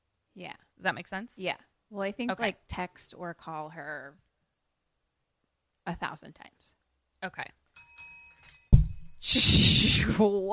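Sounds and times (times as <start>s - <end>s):
speech: 0.4s - 4.2s, 5.9s - 7.6s, 9.2s - 10.5s
small bell falling off a table: 7.8s - 9.2s.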